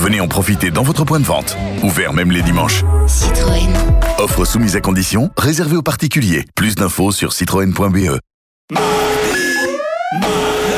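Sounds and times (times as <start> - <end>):
speech: 0.1 - 9.2
electronic alarm beeping: 9.1 - 10.7.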